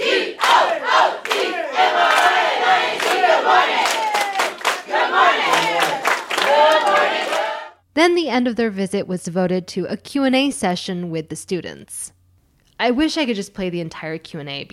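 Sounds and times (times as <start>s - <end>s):
schoolchildren shouting a morning motivation chant: 0.0s - 7.7s
speech: 8.0s - 12.2s, 12.8s - 14.7s.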